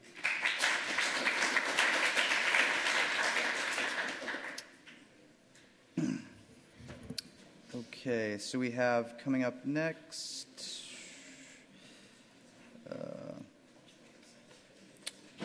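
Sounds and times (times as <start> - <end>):
audience applause: 0.0 - 4.6
cough-like sound: 6.0 - 6.4
speech: 8.0 - 10.4.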